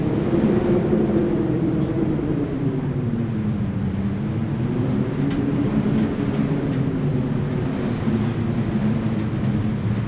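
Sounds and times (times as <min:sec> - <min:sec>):
wind: 0:00.0 - 0:10.0.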